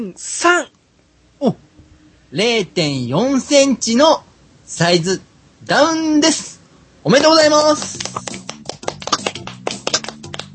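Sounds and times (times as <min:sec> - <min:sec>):
speech: 0:00.0 - 0:00.8, 0:01.4 - 0:01.6, 0:02.3 - 0:08.4
weak audience hand claps: 0:07.6 - 0:10.5.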